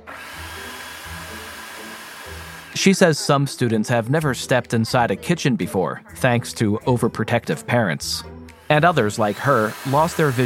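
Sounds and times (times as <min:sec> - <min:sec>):
food processor running: 0:00.0 - 0:02.9, 0:08.6 - 0:10.4
speech: 0:02.8 - 0:10.4.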